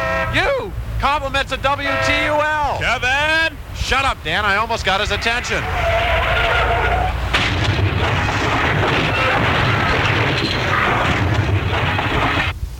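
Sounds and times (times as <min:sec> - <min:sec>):
speech: 0:00.3 - 0:06.1
rumbling debris: 0:04.8 - 0:12.6
car skidding and crashing: 0:05.1 - 0:12.6.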